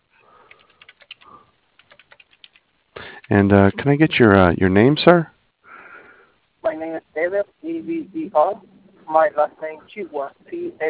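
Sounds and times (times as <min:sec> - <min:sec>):
typing on a computer keyboard: 0:00.4 - 0:03.4
speech: 0:03.3 - 0:05.3, 0:07.2 - 0:10.8.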